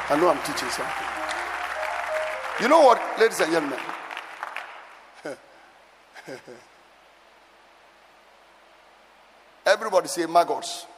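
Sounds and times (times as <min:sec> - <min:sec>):
crowd clapping: 0:00.0 - 0:05.3
speech: 0:00.1 - 0:01.2, 0:02.6 - 0:04.0, 0:05.2 - 0:05.4, 0:06.3 - 0:06.7, 0:09.7 - 0:10.9.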